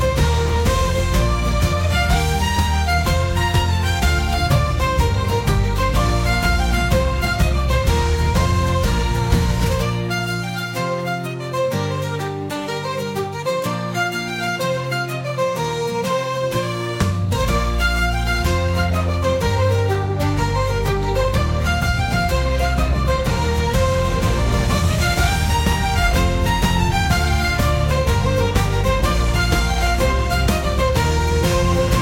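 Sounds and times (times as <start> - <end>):
bagpipes: 0.0 - 32.0.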